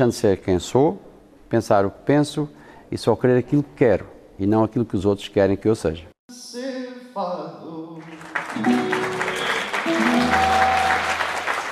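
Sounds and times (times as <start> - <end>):
speech: 0.0 - 6.6
audience applause at a concert: 8.0 - 11.7.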